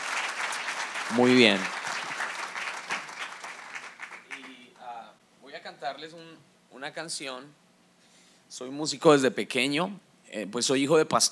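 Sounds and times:
audience applause: 0.0 - 4.6
speech: 1.1 - 1.8, 5.9 - 7.6, 8.5 - 11.2.

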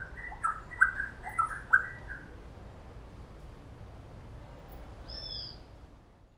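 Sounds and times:
wren singing: 0.0 - 2.3, 5.0 - 5.6.

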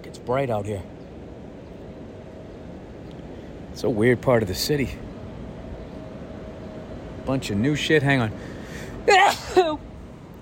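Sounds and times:
speech: 0.0 - 1.0, 3.8 - 5.1, 7.2 - 9.8
person sneezing: 9.2 - 9.8.

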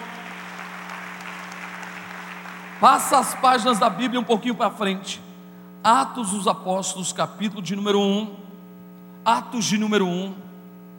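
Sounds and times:
audience applauding: 0.0 - 3.8
speech: 2.8 - 8.4, 9.2 - 10.5.

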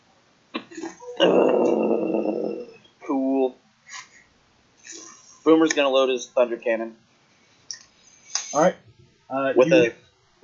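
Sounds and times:
beast snarling and growling while feasting on a kill: 1.2 - 2.8
speech: 5.5 - 7.0, 8.5 - 10.4.

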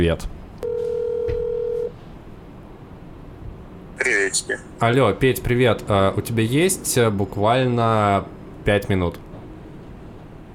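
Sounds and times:
speech: 0.0 - 0.4, 4.0 - 9.2
phone dialing: 0.6 - 1.9.

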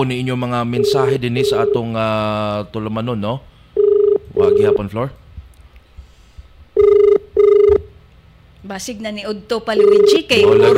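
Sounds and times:
speech: 0.0 - 3.5, 4.4 - 5.2, 8.6 - 10.7
telephone ringing on a call to the Rural Health Unit in Alcoy: 0.7 - 1.9, 3.8 - 4.8, 6.8 - 7.8, 9.8 - 10.7.

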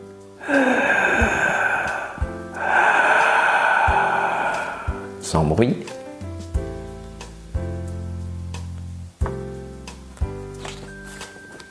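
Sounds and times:
speech: 0.4 - 0.8, 5.3 - 6.0
raspy breaths drawn through a constricted throat: 0.4 - 5.2.

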